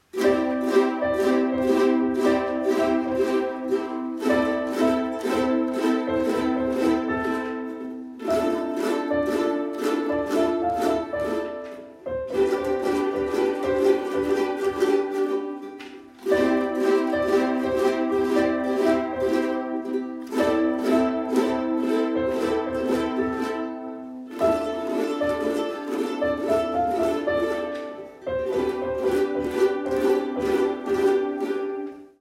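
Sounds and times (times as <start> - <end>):
ukulele: 0.0 - 32.1.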